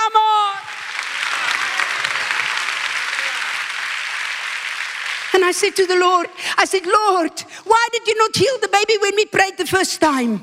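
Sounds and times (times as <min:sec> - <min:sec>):
audience applauding: 0:00.4 - 0:06.4
speech: 0:05.5 - 0:10.4.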